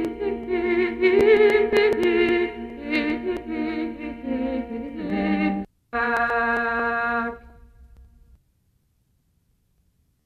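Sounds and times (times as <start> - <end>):
organum chant: 0.0 - 7.6.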